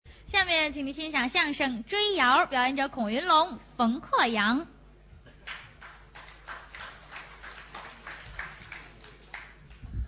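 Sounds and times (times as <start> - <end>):
speech: 0.5 - 4.8
thunderous audience applause: 5.4 - 9.8.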